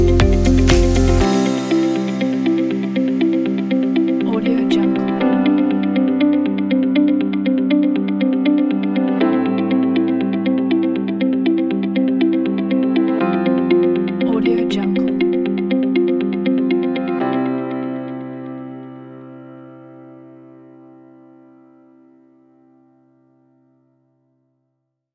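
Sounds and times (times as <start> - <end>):
corporate music: 0.0 - 19.0.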